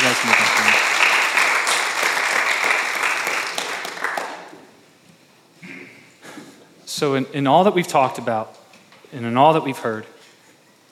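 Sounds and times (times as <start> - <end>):
audience applause: 0.0 - 4.6
speech: 7.0 - 10.2.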